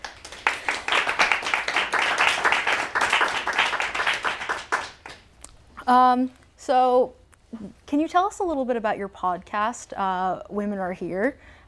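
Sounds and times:
cafe talk audience applause welcoming two city councillors: 0.0 - 5.2
speech: 5.9 - 11.6.

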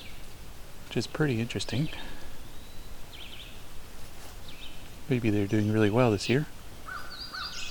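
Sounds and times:
hooded warbler singing: 0.0 - 7.6
steady hiss of rustling noise: 0.0 - 7.6
speech: 0.9 - 2.2, 5.1 - 6.6.

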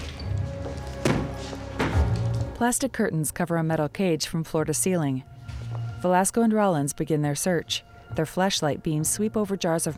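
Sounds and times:
door being kicked open: 1.0 - 2.3
speech: 2.6 - 5.3, 6.0 - 9.9.

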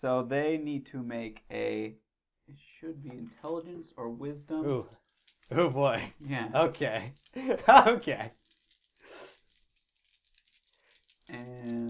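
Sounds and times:
speech: 0.0 - 8.4, 11.3 - 11.8
dice rolling: 4.4 - 11.8.

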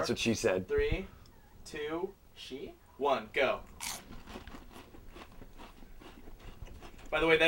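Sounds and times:
speech: 0.0 - 4.5, 7.1 - 7.4
person chewing food: 3.7 - 7.2.

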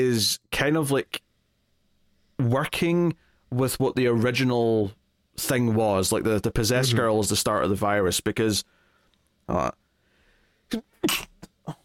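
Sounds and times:
speech: 0.0 - 1.2, 2.4 - 8.8, 9.5 - 9.8, 10.7 - 11.8
person sneezing: 10.7 - 11.8.

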